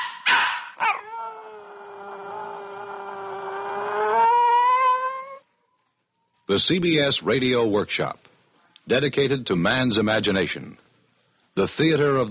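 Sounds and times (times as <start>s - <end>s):
dog barking: 0.0s - 1.0s
dog howling: 0.8s - 5.5s
speech: 6.5s - 8.2s, 8.9s - 10.8s, 11.6s - 12.3s.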